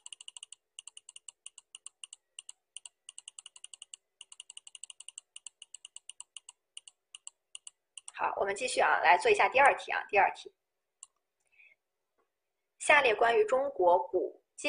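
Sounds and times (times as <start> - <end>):
computer mouse clicking: 0.0 - 8.2, 11.0 - 11.2
speech: 8.2 - 10.6, 12.9 - 14.6.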